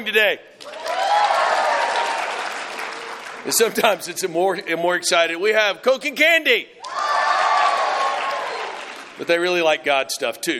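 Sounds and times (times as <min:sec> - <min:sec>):
speech: 0:00.0 - 0:00.8, 0:03.4 - 0:07.1, 0:09.2 - 0:10.5
audience applause: 0:00.6 - 0:04.1, 0:06.9 - 0:09.6.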